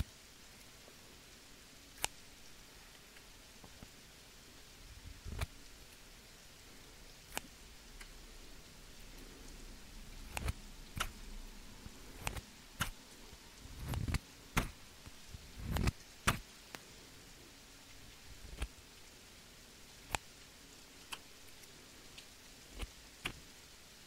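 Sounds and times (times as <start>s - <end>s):
soft rain hiss: 0.0s - 24.0s
scissors snipping: 2.0s - 2.2s, 7.3s - 7.5s, 10.2s - 11.2s, 12.1s - 13.0s, 13.8s - 14.8s, 15.6s - 16.4s.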